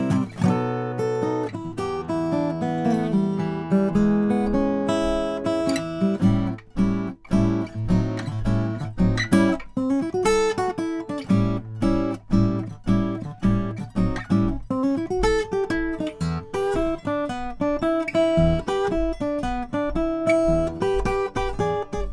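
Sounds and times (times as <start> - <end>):
Froggy Bottom R 12 Deluxe all mahogany guitar: 0.0 - 22.1.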